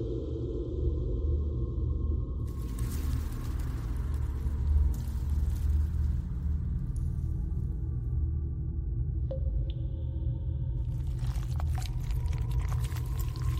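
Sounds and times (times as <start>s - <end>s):
alien hive low churning drone: 0.0s - 13.5s.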